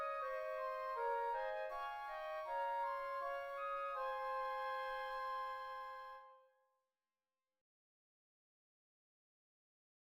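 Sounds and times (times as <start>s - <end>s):
two flutes playing: 0.0s - 6.4s.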